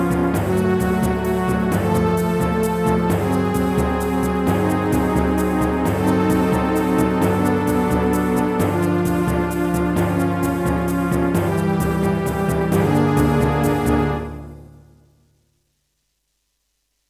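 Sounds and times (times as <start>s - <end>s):
Roland SC-88 Pro wavetable synthesizer: 0.0s - 14.6s.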